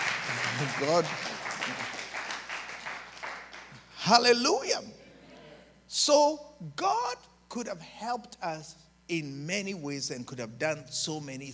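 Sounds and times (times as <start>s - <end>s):
faint audience clapping during a Christian sermon: 0.0s - 4.2s
low steady hum: 0.0s - 11.5s
speech: 0.6s - 1.9s, 4.1s - 5.0s, 5.9s - 11.5s.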